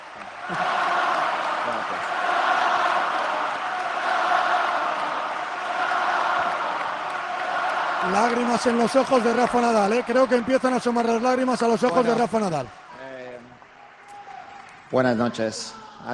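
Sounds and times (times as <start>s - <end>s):
large arena crowd roaring in an ovation: 0.0s - 16.1s
speech: 8.1s - 12.8s, 14.9s - 16.1s.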